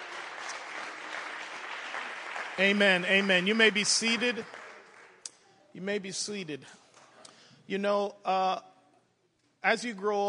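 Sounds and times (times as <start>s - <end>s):
church congregation clapping hands during a worship service: 0.0s - 5.9s
speech: 2.6s - 4.6s, 5.8s - 6.8s, 7.7s - 8.7s, 9.6s - 10.2s.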